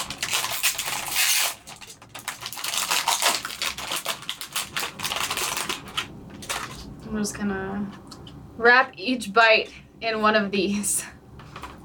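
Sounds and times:
opening package of roasted seaweed snacks: 0.0 - 6.9
speech: 7.1 - 8.0, 8.6 - 11.1.

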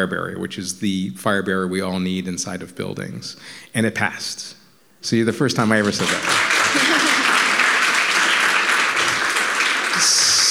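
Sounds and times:
speech: 0.0 - 6.5
audience clapping: 5.6 - 10.5
laughter: 6.5 - 7.9.

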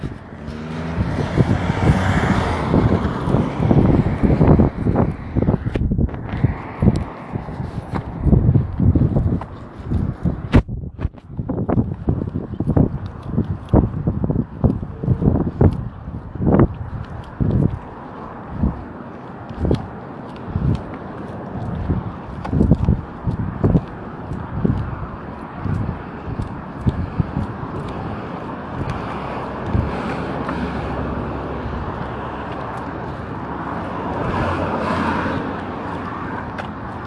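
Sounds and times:
footsteps walking outdoors: 0.0 - 37.0
passing road traffic: 0.0 - 37.0
wind: 0.0 - 37.0.

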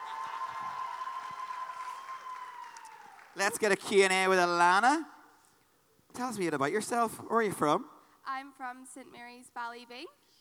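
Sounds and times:
sustained high cheer or whistle: 0.0 - 3.6
crowd applause: 0.0 - 3.9
speech: 3.4 - 5.2, 6.2 - 10.2.

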